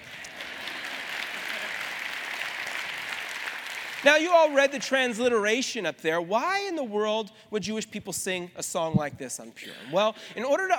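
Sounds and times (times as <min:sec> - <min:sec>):
audience applause: 0:00.0 - 0:04.8
speech: 0:04.0 - 0:10.7.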